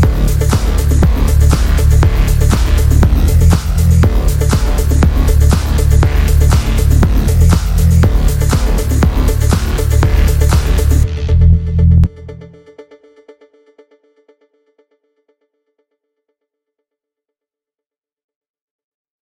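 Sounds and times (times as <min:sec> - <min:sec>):
phonk music: 0:00.0 - 0:12.8.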